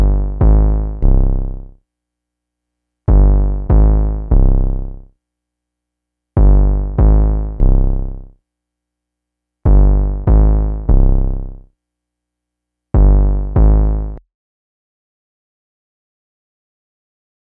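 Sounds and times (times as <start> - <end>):
TR808 drum machine kick bass: 0.0 - 1.6, 3.1 - 4.9, 6.4 - 8.1, 9.7 - 11.5, 13.0 - 14.0.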